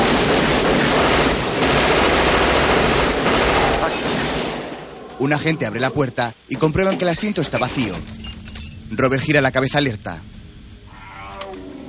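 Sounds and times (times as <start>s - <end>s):
sustained gunfire riddling a van in a 1996 action thriller film: 0.0s - 4.9s
speech: 5.2s - 8.2s, 8.9s - 10.3s.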